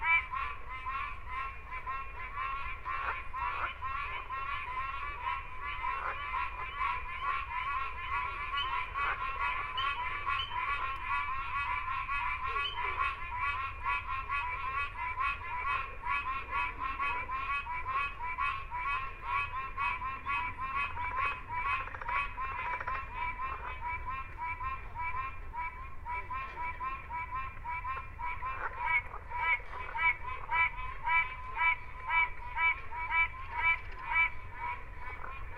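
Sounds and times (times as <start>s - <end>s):
whippoorbill frog calling in a bog: 0.0s - 35.5s.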